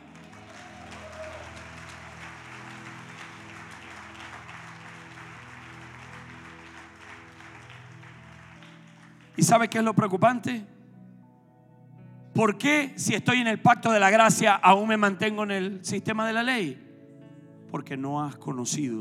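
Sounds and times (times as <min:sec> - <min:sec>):
audience applauding: 0:00.0 - 0:10.0
speech: 0:09.4 - 0:10.8, 0:12.4 - 0:16.8, 0:17.7 - 0:18.9.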